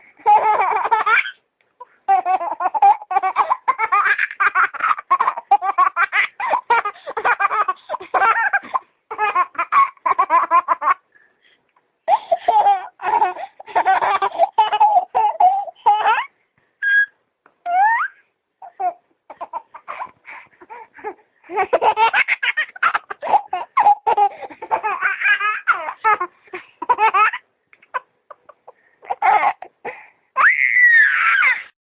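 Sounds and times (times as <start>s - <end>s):
baby laughing: 0.2s - 11.0s, 12.1s - 31.7s.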